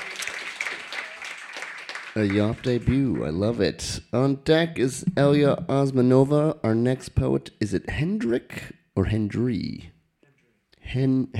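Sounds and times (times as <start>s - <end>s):
audience applause for a poet: 0.0s - 3.2s
speech: 2.2s - 9.9s, 10.9s - 11.3s.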